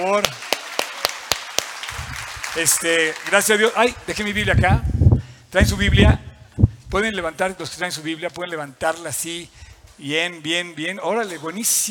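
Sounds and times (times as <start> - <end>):
speech: 0.0 - 0.4, 2.6 - 4.9, 5.5 - 6.3, 6.9 - 11.8
hands clapping: 0.0 - 4.6
low rumble: 1.9 - 2.5, 4.0 - 7.3.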